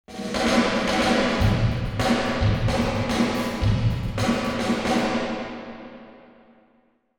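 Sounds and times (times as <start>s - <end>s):
velvet drums: 0.0s - 5.5s.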